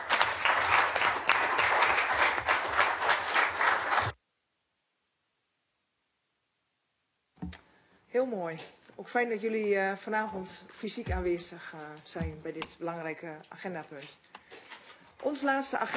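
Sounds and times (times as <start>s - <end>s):
applause: 0.0s - 4.2s
speech: 8.2s - 14.2s, 15.2s - 15.9s.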